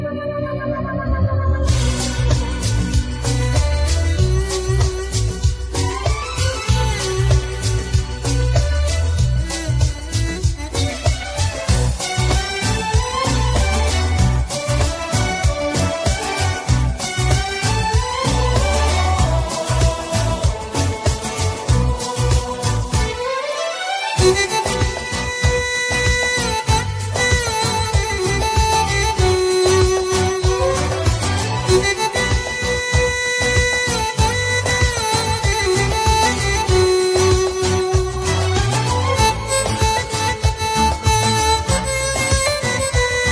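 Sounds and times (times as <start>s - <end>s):
violin: 0.1s - 43.2s.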